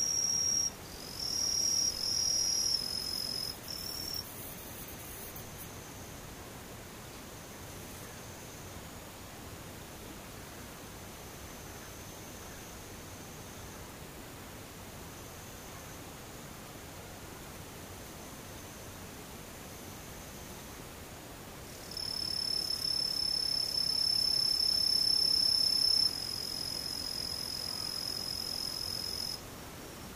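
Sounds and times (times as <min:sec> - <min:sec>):
daytime insects buzzing: 0:00.0 - 0:06.1, 0:21.7 - 0:29.4
soft hiss: 0:00.0 - 0:30.1.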